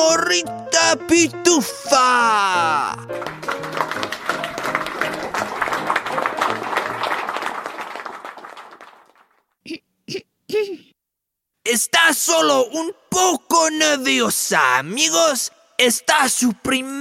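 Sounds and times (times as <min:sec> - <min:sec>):
speech: 0:00.2 - 0:03.4, 0:11.7 - 0:17.0
crowd applauding: 0:02.2 - 0:09.5
throat clearing: 0:09.6 - 0:11.0.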